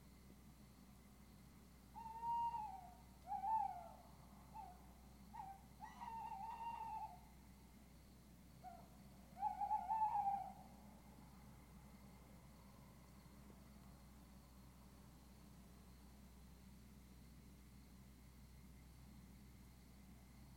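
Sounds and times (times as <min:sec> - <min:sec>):
low steady hum: 0:00.0 - 0:09.6, 0:10.3 - 0:20.5
owl hooting: 0:01.9 - 0:07.3, 0:08.6 - 0:10.8.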